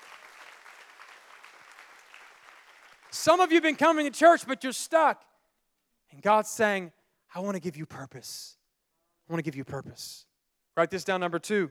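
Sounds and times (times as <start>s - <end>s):
audience clapping: 0.0s - 3.8s
speech: 3.1s - 5.3s, 6.1s - 8.6s, 9.3s - 11.7s.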